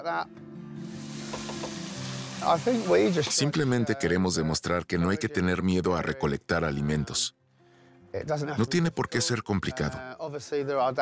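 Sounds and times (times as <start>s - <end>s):
speech: 0.0s - 1.0s, 2.4s - 7.4s, 8.1s - 11.0s
chopped dipped giant parsley heads sizzling in a pan: 0.8s - 3.6s.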